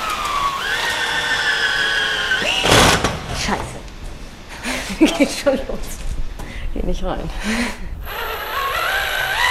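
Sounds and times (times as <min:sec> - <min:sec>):
cordless drill-driver motor whine at a carpentry workbench: 0:00.0 - 0:02.9, 0:08.0 - 0:09.4
speech: 0:03.5 - 0:03.8, 0:04.9 - 0:06.0, 0:06.8 - 0:07.8.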